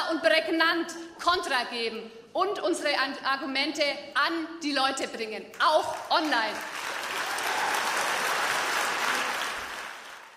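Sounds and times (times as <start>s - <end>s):
speech: 0.1s - 6.9s
audience applause: 6.5s - 10.3s.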